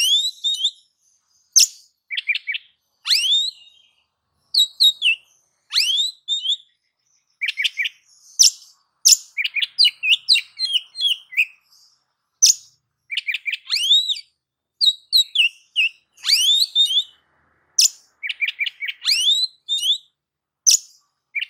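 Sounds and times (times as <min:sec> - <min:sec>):
oriental magpie-robin singing: 0:00.0 - 0:21.4.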